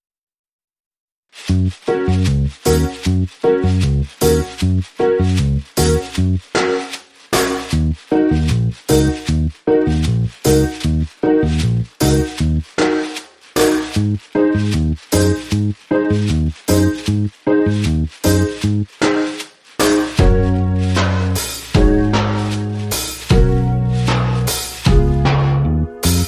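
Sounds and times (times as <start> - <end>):
reggae riddim: 1.4 - 26.2.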